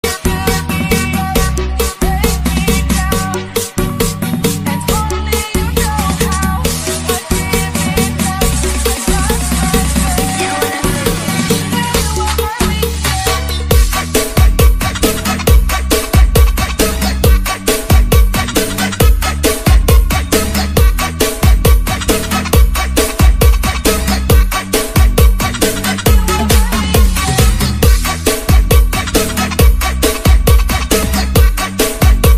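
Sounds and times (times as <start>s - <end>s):
full bass: 0.0s - 32.3s.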